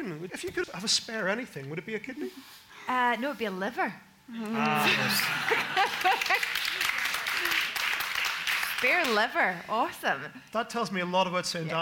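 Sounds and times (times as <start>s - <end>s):
speech: 0.0s - 6.6s, 8.8s - 11.8s
laughter: 4.6s - 7.7s
audience applause: 4.8s - 9.3s.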